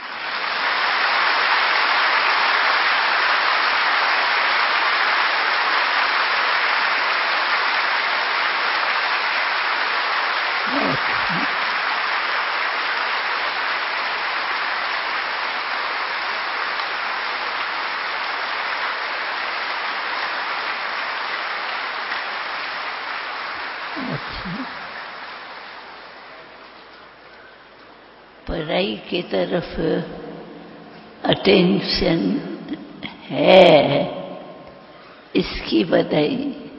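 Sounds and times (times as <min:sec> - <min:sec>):
group of people clapping to congratulate a student: 0:00.0 - 0:28.1
speech: 0:28.8 - 0:30.2, 0:31.3 - 0:34.2, 0:35.4 - 0:36.6.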